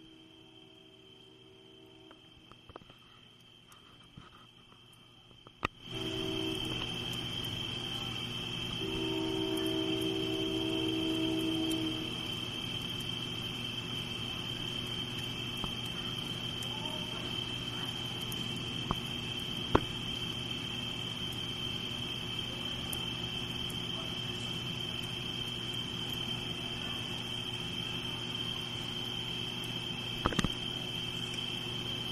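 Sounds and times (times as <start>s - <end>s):
wall of insects chirping in trees: 0.0s - 32.1s
train horn: 5.9s - 6.9s, 8.8s - 12.3s.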